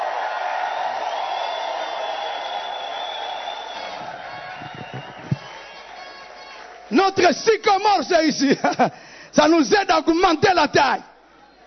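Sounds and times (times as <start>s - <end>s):
audience shouting for joy: 0.0s - 7.2s
speech: 6.9s - 11.1s.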